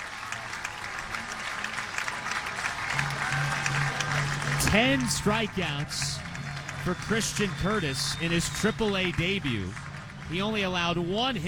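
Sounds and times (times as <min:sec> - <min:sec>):
scattered cheers: 0:00.0 - 0:11.1
baseball crowd applauding: 0:00.0 - 0:11.4
low tonal hum: 0:02.9 - 0:11.2
speech: 0:04.7 - 0:06.2, 0:06.8 - 0:11.4.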